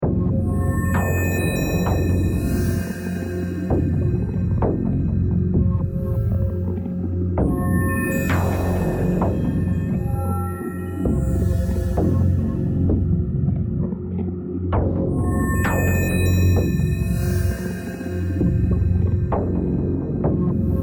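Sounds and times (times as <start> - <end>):
music: 0.0 - 20.8.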